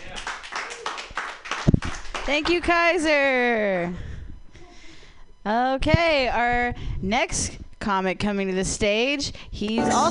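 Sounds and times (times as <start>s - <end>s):
audience clapping rhythmically: 0.0s - 2.9s
speech: 2.3s - 4.1s, 5.5s - 10.0s.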